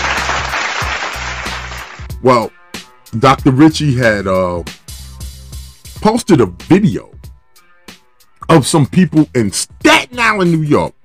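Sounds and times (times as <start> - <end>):
audience applause: 0.0 - 2.1
speech: 2.2 - 4.8, 6.0 - 7.1, 8.5 - 11.0.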